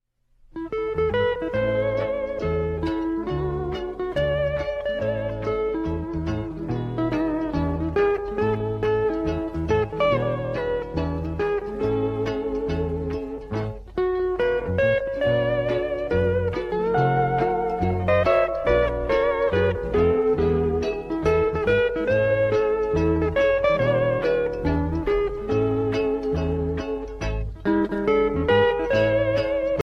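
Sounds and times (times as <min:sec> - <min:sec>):
ukulele: 0:00.3 - 0:29.8.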